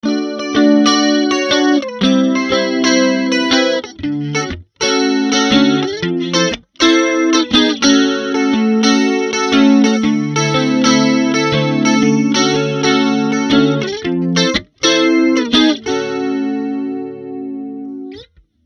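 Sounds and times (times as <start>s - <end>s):
electric guitar on middle and bridge pickup: 0.0s - 18.4s.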